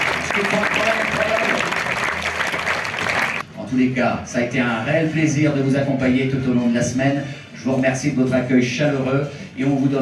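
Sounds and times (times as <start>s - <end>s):
audience applause: 0.0s - 3.4s
speech: 3.7s - 10.0s.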